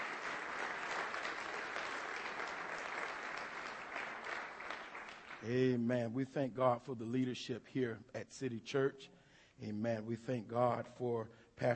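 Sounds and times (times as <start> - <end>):
audience applause: 0.0 - 5.4
speech: 5.4 - 11.7.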